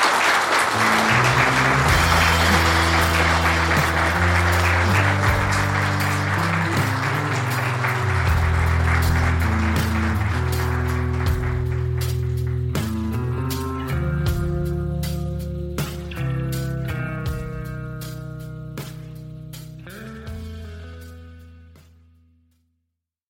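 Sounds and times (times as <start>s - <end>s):
audience applause for the guests: 0.0s - 13.3s
sustained musical backing with shifting held tones: 0.0s - 22.3s.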